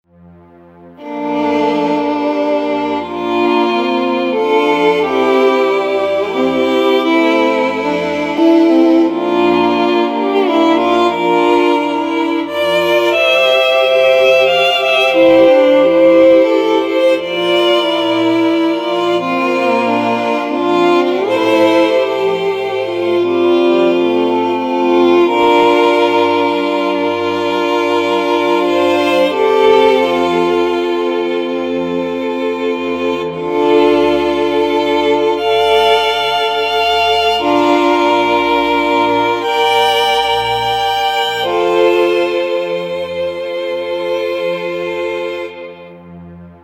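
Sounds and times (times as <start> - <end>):
violin: 0.0 - 46.6.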